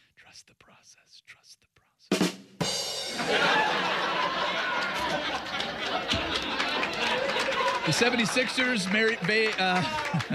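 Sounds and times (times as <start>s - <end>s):
speech: 0.4s - 4.1s, 5.1s - 10.3s
faint laughs: 3.2s - 8.1s, 9.6s - 10.3s
crowd chatter: 3.2s - 10.3s.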